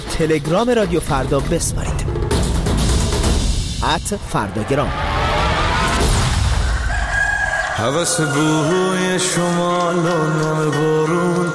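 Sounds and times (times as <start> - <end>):
dense rumbling background: 0.0 - 7.4
speech: 0.2 - 2.2, 3.8 - 5.1, 7.8 - 11.5
rooster crowing: 5.3 - 11.5.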